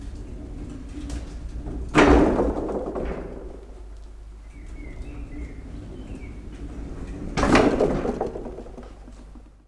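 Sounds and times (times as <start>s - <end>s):
wagonnets rolling: 0.0s - 9.6s.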